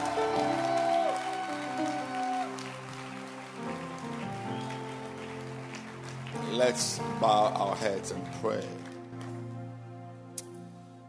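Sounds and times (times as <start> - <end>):
audience clapping hands: 0.0 - 9.5
speech: 6.6 - 8.9.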